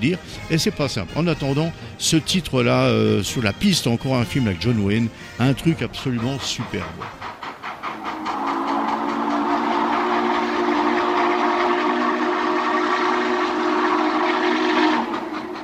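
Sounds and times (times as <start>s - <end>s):
speech: 0.0s - 7.3s
steam train rumble: 0.0s - 15.6s
steam train whistle: 7.8s - 15.6s.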